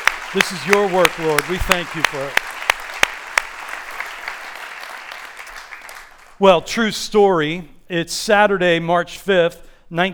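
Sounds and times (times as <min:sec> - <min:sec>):
audience applause: 0:00.0 - 0:06.4
speech: 0:00.3 - 0:02.4, 0:06.4 - 0:10.1.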